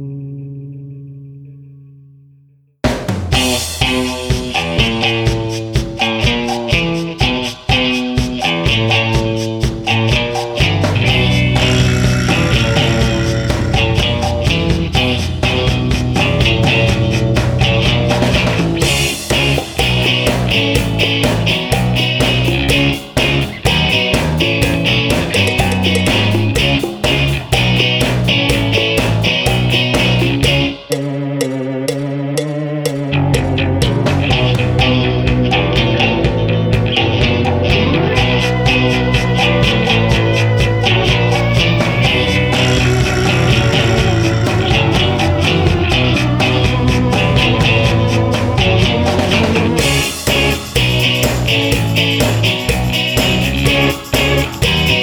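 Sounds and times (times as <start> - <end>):
rockabilly music: 2.8 - 55.0.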